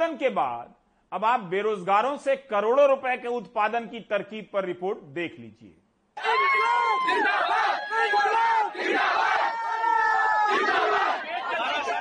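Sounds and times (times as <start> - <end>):
speech: 0.1 - 8.1
large crowd of protesting students shouting: 6.2 - 11.9.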